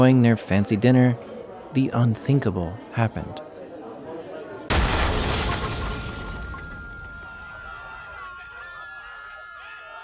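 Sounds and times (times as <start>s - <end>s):
speech: 0.0s - 3.5s
massive explosion in a busy cafe in Marrakesh: 4.7s - 7.4s.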